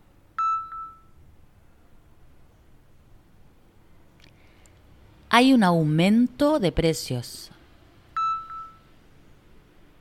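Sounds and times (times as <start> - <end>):
speech: 5.4 - 7.5
two short electronic beeps: 8.2 - 8.9.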